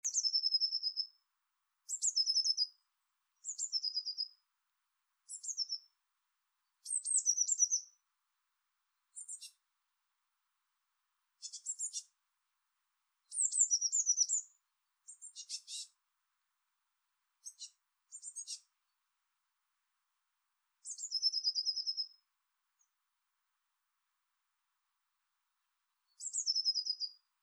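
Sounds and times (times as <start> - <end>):
Eurasian blue tit calling: 0.0 - 1.1, 1.9 - 2.7, 3.4 - 4.3, 5.3 - 5.8, 6.8 - 7.9, 9.2 - 9.6, 11.4 - 12.1, 13.3 - 14.5, 15.1 - 16.0, 17.4 - 18.7, 20.8 - 22.1, 26.2 - 27.2.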